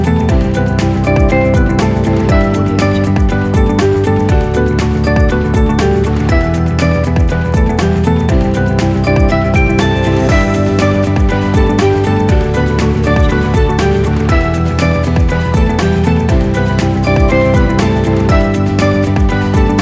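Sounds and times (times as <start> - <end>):
motivational uplifting corporate music: 0.0 - 19.7.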